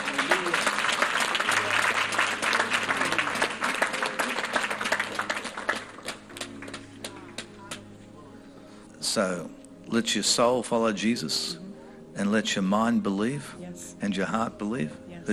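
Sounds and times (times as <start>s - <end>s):
audience clapping: 0.0s - 7.9s
speech: 9.2s - 11.6s, 12.2s - 15.3s.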